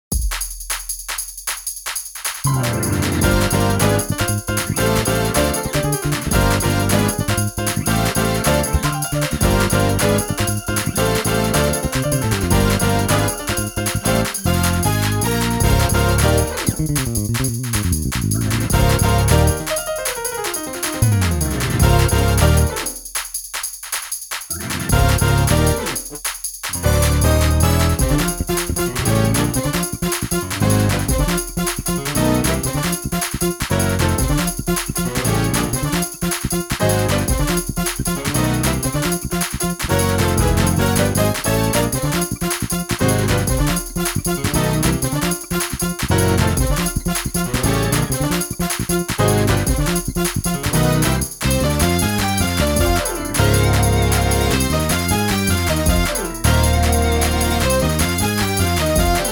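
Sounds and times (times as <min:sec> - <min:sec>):
music without drums: 0:00.1 - 0:59.3.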